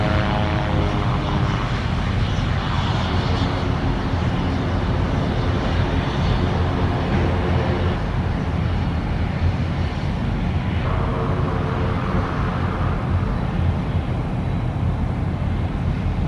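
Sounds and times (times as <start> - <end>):
propeller airplane landing at an airport: 0.0 - 16.2.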